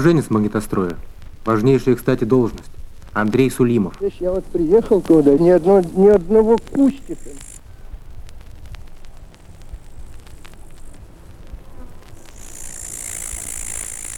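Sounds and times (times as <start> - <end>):
speech: 0.0 - 7.5
grasshoppers chirring: 0.0 - 14.1
mosquitoes buzzing: 3.2 - 7.8, 8.6 - 14.1.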